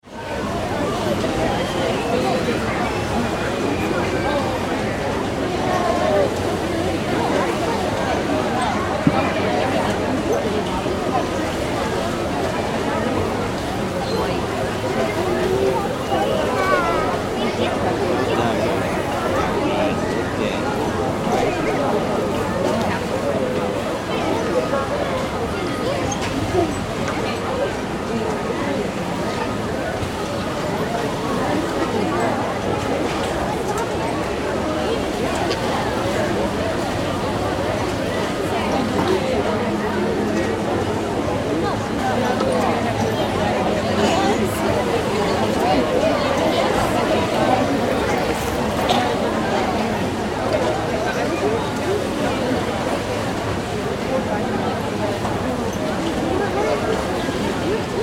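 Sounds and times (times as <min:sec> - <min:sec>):
fairground crowd: 0:00.0 - 0:58.0
fairground rides: 0:00.0 - 0:58.0.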